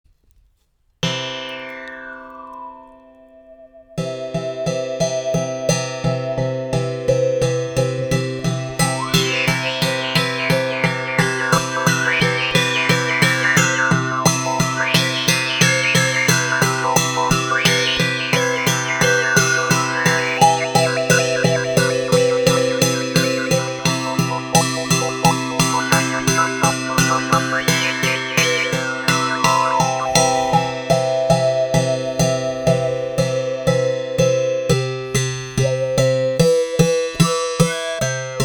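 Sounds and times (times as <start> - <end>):
classical two-string instrument: 4.0 - 38.4
jaw harps: 4.0 - 38.4.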